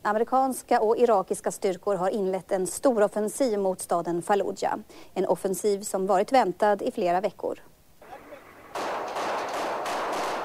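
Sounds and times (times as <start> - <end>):
speech: 0.0 - 7.7
gunfire in street fighting: 8.0 - 10.4.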